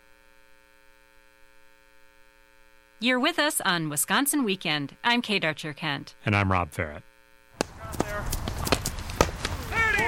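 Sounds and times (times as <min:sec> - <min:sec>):
speech: 0:03.0 - 0:07.1
hurling players running a drill: 0:07.6 - 0:10.0.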